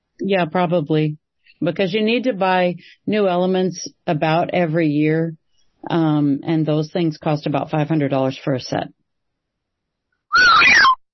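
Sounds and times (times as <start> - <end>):
speech: 0.2 - 9.0
person whistling: 10.3 - 11.0.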